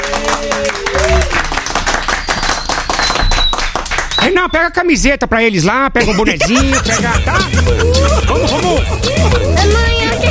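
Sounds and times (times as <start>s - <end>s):
studio audience applauding: 0.0s - 4.4s
speech: 4.4s - 10.2s
laughter: 6.0s - 10.2s.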